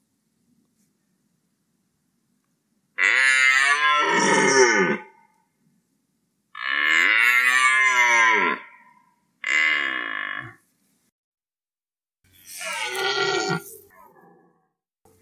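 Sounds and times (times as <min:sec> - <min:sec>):
red deer roaring: 0:03.0 - 0:05.2, 0:06.6 - 0:10.6, 0:12.5 - 0:13.7.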